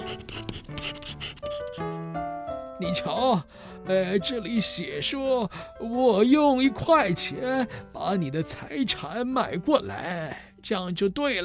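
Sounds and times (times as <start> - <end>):
pen writing on paper: 0.0 - 2.1
speech: 2.8 - 11.4.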